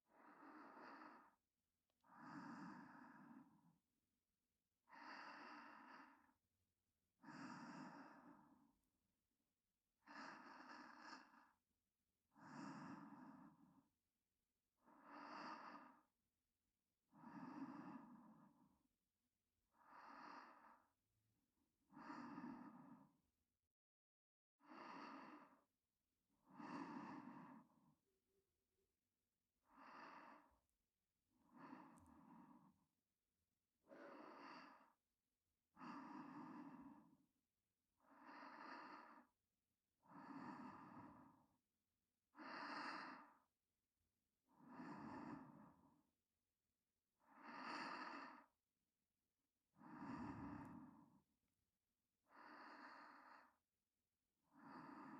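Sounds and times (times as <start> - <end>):
person breathing in sleep on the right: 0.1 - 1.4, 2.0 - 3.8, 4.8 - 6.4, 7.2 - 8.8, 10.0 - 11.6, 12.3 - 13.9, 14.8 - 16.2, 17.1 - 18.8, 19.7 - 21.0, 21.8 - 23.3, 24.6 - 28.0, 29.6 - 30.7, 31.3 - 33.0, 33.8 - 35.1, 35.7 - 37.3, 38.0 - 39.4, 40.0 - 41.6, 42.3 - 43.6, 44.4 - 46.2, 47.2 - 48.7, 49.7 - 51.4, 52.2 - 53.8, 54.4 - 55.1.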